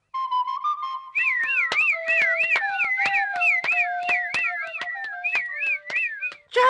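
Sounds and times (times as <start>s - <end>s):
fujarka shepherd's pipe playing: 0.2s - 6.5s.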